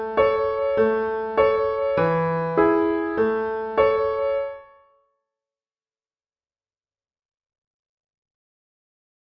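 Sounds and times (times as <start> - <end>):
musical accompaniment in A: 0.0 - 4.8.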